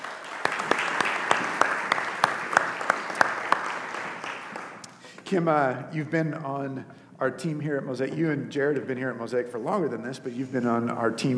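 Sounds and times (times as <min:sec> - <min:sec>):
church congregation applauding to welcome the kids pastor: 0:00.0 - 0:05.2
speech: 0:05.3 - 0:11.3.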